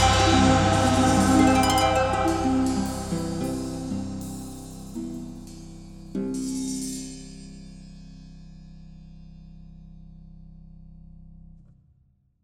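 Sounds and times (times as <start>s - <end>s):
instrumental theme music: 0.0s - 5.8s.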